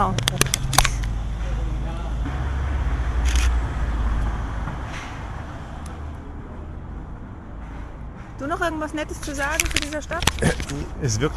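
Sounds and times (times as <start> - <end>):
low hum of passing traffic: 0.0 - 11.3
mechanical camera shutter clicks: 3.2 - 3.6
speech: 8.5 - 11.3.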